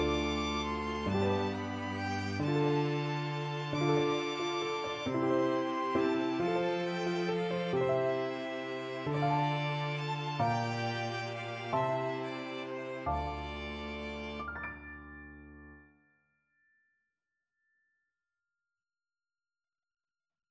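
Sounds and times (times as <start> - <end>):
piano quintet playing: 0.0 - 15.7.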